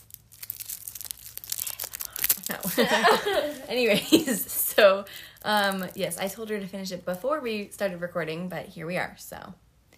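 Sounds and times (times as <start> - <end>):
candy cane wrapper being ripped and crinkled: 0.0 - 3.9, 5.2 - 6.5
speech: 2.5 - 9.6.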